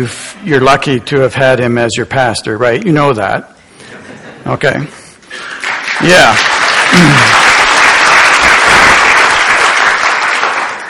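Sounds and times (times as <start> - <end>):
speech: 0.0 - 3.5, 4.5 - 7.4
audience hand clapping: 5.3 - 10.8.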